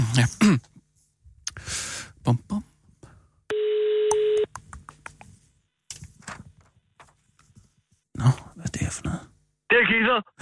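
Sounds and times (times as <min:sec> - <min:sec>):
speech: 0:00.1 - 0:00.7, 0:01.6 - 0:02.7, 0:09.8 - 0:10.4
outgoing phone call ringing tone: 0:03.5 - 0:04.5.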